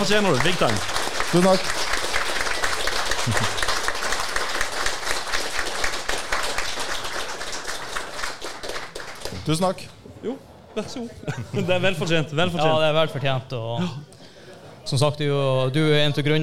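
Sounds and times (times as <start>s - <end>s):
large crowd standing applause: 0.0s - 9.7s
speech: 0.1s - 1.9s, 3.2s - 3.5s, 9.5s - 14.1s, 14.9s - 16.4s
laughter: 3.1s - 3.7s, 10.8s - 12.8s, 13.8s - 15.0s.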